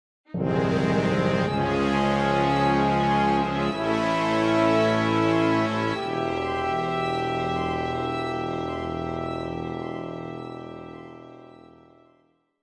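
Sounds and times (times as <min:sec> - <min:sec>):
long dramatic music: 0:00.4 - 0:11.9.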